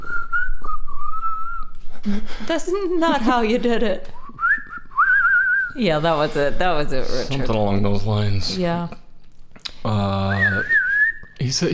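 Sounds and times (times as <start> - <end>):
person whistling imitating a bird flying: 0.0 - 1.8, 4.2 - 5.8, 10.2 - 11.4
speech: 2.0 - 4.2, 5.8 - 9.0, 11.5 - 11.7.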